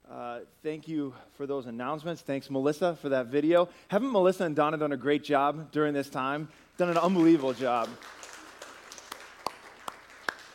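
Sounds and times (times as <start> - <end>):
speech: 0.4 - 8.2
sparse faint applause from a small audience: 7.0 - 10.5.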